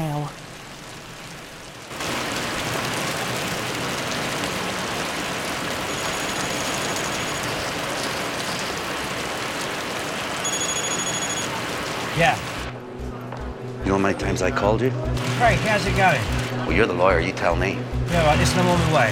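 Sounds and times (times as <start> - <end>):
heavy rain drumming on a car roof: 0.0 - 12.7, 15.2 - 16.5, 18.0 - 19.1
speech: 12.2 - 12.5, 14.0 - 19.1.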